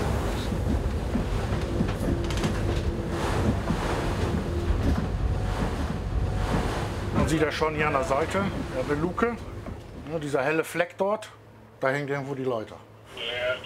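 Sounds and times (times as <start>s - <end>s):
gusts of wind buffeting the microphone: 0.0s - 10.2s
waves crashing and hissing against the hull: 0.0s - 10.8s
vessel's engine droning: 0.0s - 11.8s
speech: 7.3s - 9.5s, 10.1s - 13.6s.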